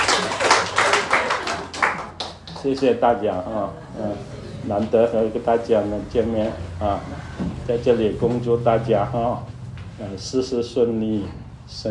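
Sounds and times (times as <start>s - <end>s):
audience clapping in a steady rhythm: 0.0s - 3.0s
speech: 2.6s - 11.8s.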